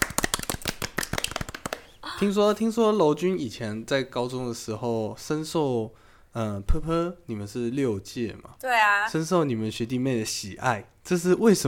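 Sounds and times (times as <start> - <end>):
clapping: 0.0 - 1.9
speech: 2.2 - 11.6.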